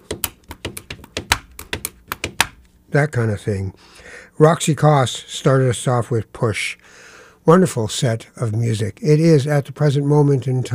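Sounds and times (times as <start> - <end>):
pen tapping on paper: 0.0 - 2.7
speech: 2.9 - 10.7.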